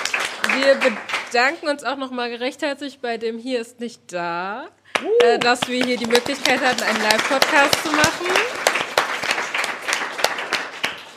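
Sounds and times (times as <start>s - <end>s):
audience applause: 0.0s - 1.3s, 5.0s - 11.1s
speech: 0.6s - 8.7s.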